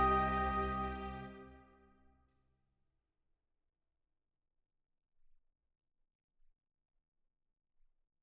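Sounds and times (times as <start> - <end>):
orchestra playing: 0.0 - 1.6.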